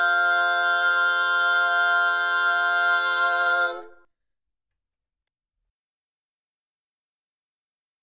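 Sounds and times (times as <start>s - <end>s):
tenor singing: 0.0s - 4.1s.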